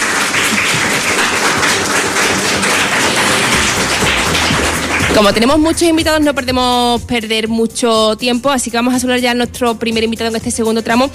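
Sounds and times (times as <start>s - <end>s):
schoolchildren applauding: 0.0s - 5.7s
speech: 5.2s - 11.1s.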